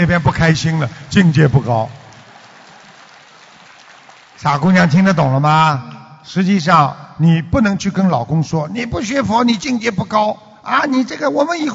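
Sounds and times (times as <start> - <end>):
speech: 0.0 - 2.0, 4.4 - 11.7
audience applause: 0.0 - 5.0.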